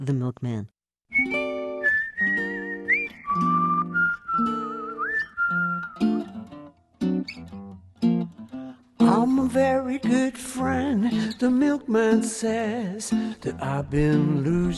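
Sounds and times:
speech: 0.0 - 1.4, 9.4 - 14.7
person whistling a melody in a song: 1.1 - 6.2.

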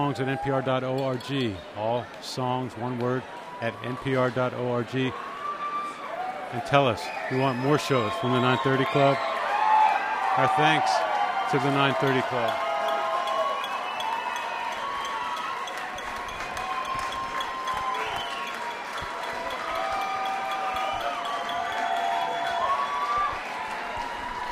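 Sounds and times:
speech: 0.0 - 5.3, 6.5 - 9.3, 10.4 - 12.6
concert crowd cheering for an encore: 0.0 - 24.5
concert crowd clapping: 9.4 - 24.5
shrill whistles: 13.2 - 23.6.

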